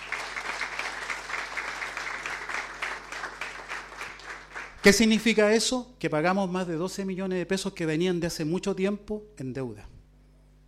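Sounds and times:
applause: 0.0 - 5.2
speech: 4.8 - 9.9.

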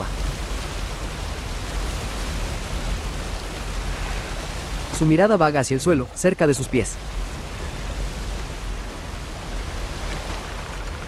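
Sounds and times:
waterfall pouring down a rock wall into a large pond: 0.0 - 11.0
speech: 5.0 - 7.2.

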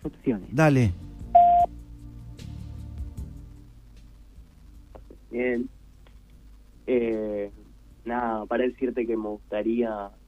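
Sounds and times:
low faint noise: 0.0 - 10.2
speech: 0.3 - 1.0, 5.4 - 5.7, 6.9 - 10.2
Antel voicemail electronic beep: 1.4 - 1.7.

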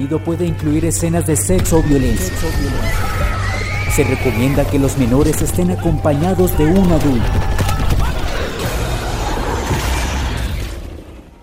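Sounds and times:
speech: 0.0 - 7.6
fireworks exploding around the illuminated Cinderella castle at dusk: 4.0 - 10.6.

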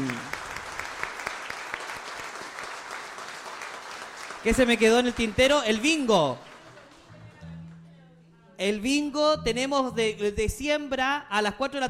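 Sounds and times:
crowd clapping: 0.0 - 8.0
speech: 4.4 - 6.5, 8.6 - 11.8.

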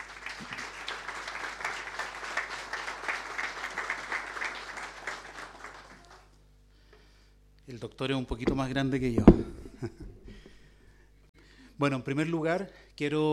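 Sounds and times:
audience applause: 0.0 - 6.4
speech: 7.7 - 10.0, 11.8 - 13.3.

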